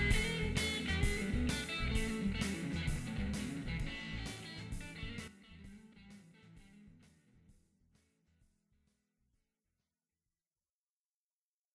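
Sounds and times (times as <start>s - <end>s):
blues improvisation: 0.0s - 8.1s.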